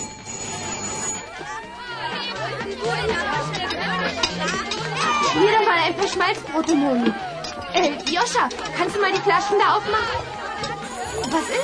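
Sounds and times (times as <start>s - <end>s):
doorbell ringing: 0.0s - 1.4s
crowd chattering and laughing: 0.0s - 11.6s
speech: 5.4s - 10.4s, 11.3s - 11.6s.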